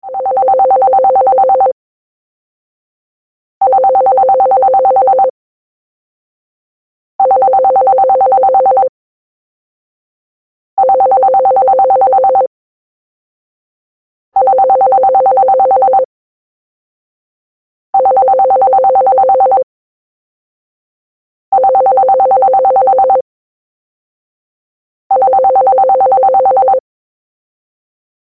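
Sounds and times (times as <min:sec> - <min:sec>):
landline phone ringtone: 0:00.1 - 0:01.8, 0:03.6 - 0:05.4, 0:07.2 - 0:08.9, 0:10.8 - 0:12.5, 0:14.4 - 0:16.1, 0:18.0 - 0:19.7, 0:21.6 - 0:23.2, 0:25.1 - 0:26.8.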